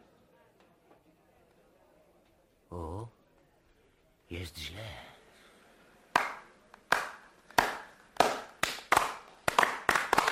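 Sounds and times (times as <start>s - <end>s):
speech: 4.3s - 5.1s
people clapping: 6.1s - 10.3s.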